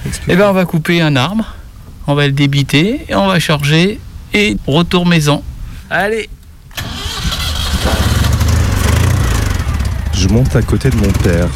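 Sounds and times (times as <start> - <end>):
speech: 0.1 - 7.0, 10.2 - 11.5
old Citroën 2CV car engine starting and idling: 6.7 - 11.5.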